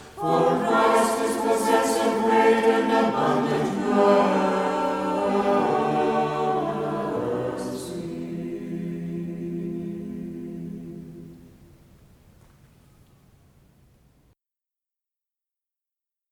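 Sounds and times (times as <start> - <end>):
choir chanting a Byzantine hymn in tone two: 0.0 - 11.6.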